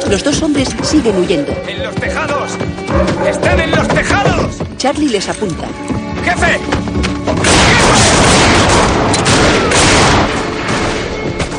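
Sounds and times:
speech: 0.1 - 7.7
gunfire in a western film shootout on the rooftops: 7.4 - 11.2.

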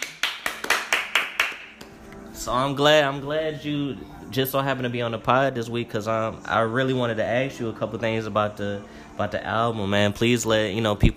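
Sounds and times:
hands clapping: 0.0 - 2.1
speech: 2.4 - 11.1.

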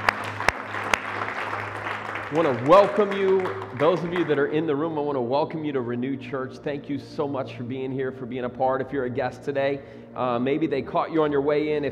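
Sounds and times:
hand clap of praise: 0.0 - 4.6
speech: 2.3 - 11.8.

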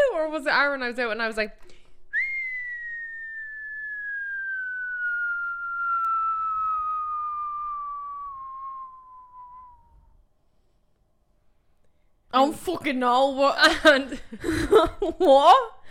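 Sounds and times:
speech: 0.4 - 1.8, 12.3 - 15.8
person whistling a falling note: 2.1 - 10.2.

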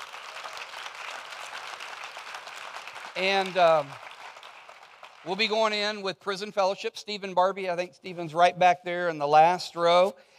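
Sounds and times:
audience applause: 0.0 - 5.6
speech: 3.2 - 4.0, 5.2 - 10.3.

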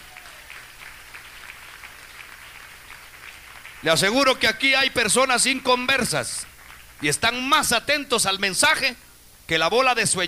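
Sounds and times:
audience clapping hands: 0.0 - 4.9, 5.9 - 7.4
speech: 3.8 - 10.2.

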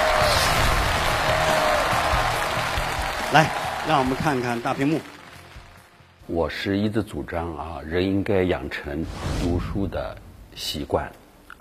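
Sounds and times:
audience applause: 0.0 - 6.1
speech: 3.3 - 5.2, 6.3 - 11.5.

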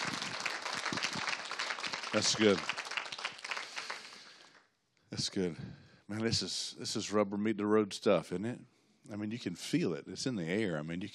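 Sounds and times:
audience applause: 0.0 - 4.6
speech: 2.1 - 2.8, 5.1 - 11.1.

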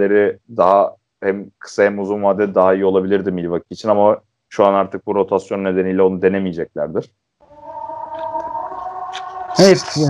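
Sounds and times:
speech: 0.0 - 7.2, 9.6 - 10.0
closing siren: 7.4 - 10.0.

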